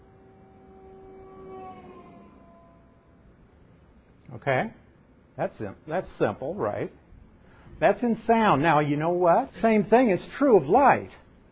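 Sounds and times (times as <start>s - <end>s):
passing siren wailing with Doppler shift: 0.0s - 4.0s
low rumbling hum: 0.0s - 9.8s
speech: 4.4s - 4.8s, 5.4s - 7.0s, 7.8s - 11.2s.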